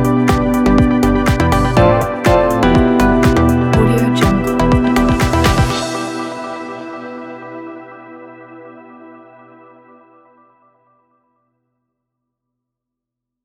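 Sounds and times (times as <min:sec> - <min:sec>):
fashion electronic music: 0:00.0 - 0:09.0.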